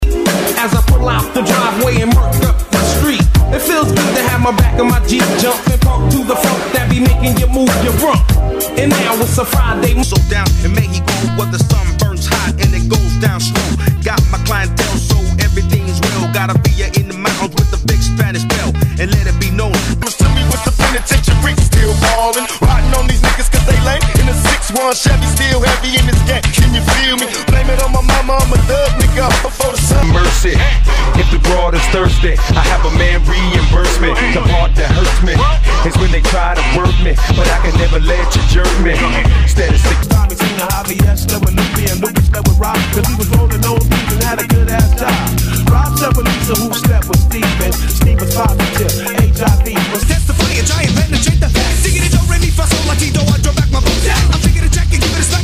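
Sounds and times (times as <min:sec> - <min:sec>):
old school hip hop megamix: 0:00.0 - 0:55.4.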